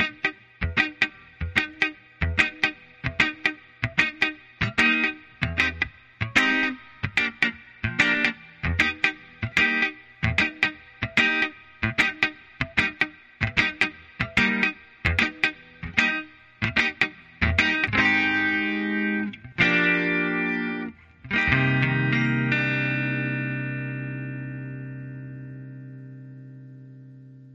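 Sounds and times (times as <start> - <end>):
lead guitar: 0.0 - 27.5.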